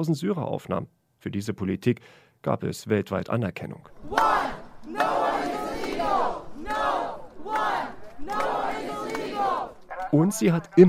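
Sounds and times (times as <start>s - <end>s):
speech: 0.0s - 4.3s, 10.1s - 10.8s
protest crowd chanting slogans: 3.9s - 10.8s.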